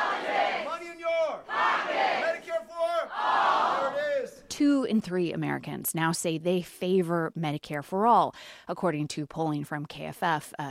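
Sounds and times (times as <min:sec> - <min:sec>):
crowd chanting a campaign slogan: 0:00.0 - 0:04.5
speech: 0:04.6 - 0:10.7.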